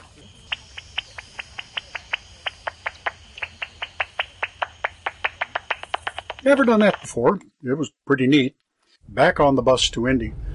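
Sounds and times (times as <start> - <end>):
Indiana bat echolocation clicks via ultrasonic detector: 0.0 - 7.2
low hiss: 0.0 - 10.5
speech: 6.4 - 10.4.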